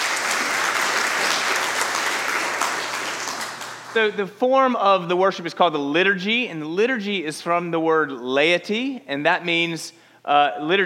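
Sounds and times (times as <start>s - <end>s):
audience applause: 0.0s - 4.2s
speech: 4.0s - 10.8s.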